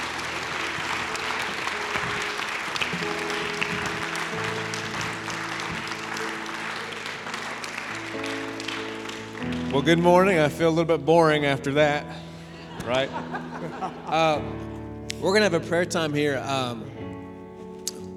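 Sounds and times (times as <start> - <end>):
audience clapping: 0.0 - 11.3, 12.8 - 14.3
speech: 9.8 - 12.2, 12.8 - 16.9
laughter: 12.3 - 14.8.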